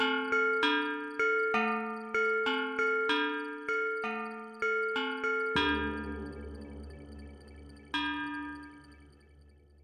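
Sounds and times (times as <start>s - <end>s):
water clock: 0.0s - 6.7s.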